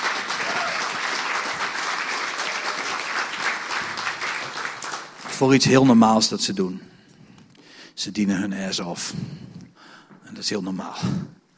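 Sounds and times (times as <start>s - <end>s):
audience applause for the band: 0.0s - 5.6s
speech: 5.4s - 7.0s, 8.0s - 9.6s, 10.3s - 11.4s.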